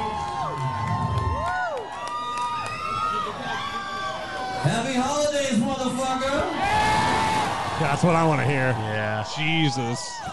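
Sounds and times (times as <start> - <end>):
concert crowd cheering: 0.0 - 10.3
speech: 4.6 - 6.8, 7.8 - 10.3.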